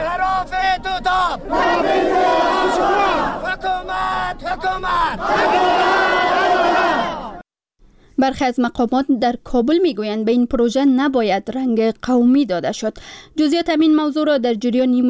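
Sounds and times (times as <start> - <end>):
protesters chanting at a demonstration in Bamyan, Afghanistan: 0.0 - 7.4
speech: 8.2 - 15.0.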